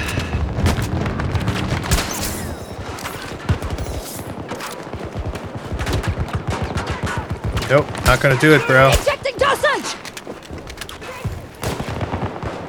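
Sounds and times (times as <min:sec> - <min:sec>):
pistol gunfire in a shooter video game: 0:00.2 - 0:10.0, 0:11.0 - 0:12.6
speech: 0:07.7 - 0:09.9.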